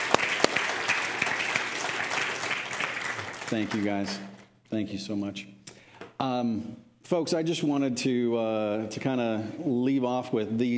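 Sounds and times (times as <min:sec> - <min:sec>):
round of applause: 0:00.0 - 0:04.5
speech: 0:03.5 - 0:05.6, 0:06.2 - 0:10.7.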